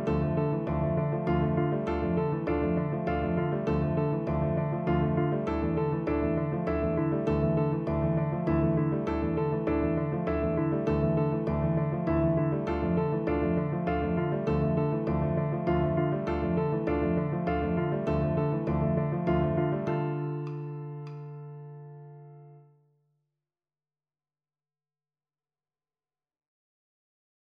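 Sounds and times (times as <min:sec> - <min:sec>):
ostinato: 0:00.0 - 0:21.3.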